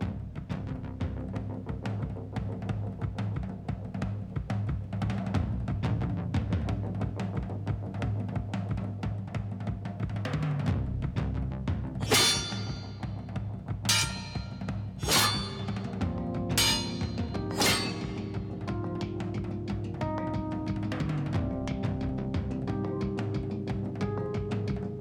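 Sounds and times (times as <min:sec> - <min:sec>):
drums: 0:00.0 - 0:25.0.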